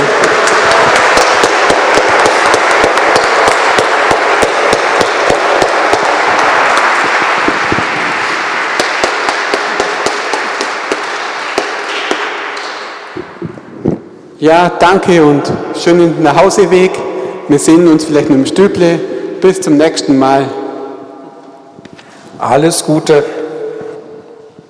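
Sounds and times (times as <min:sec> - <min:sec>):
audience applause: 0:00.0 - 0:13.2
speech: 0:14.4 - 0:20.6, 0:22.5 - 0:23.4.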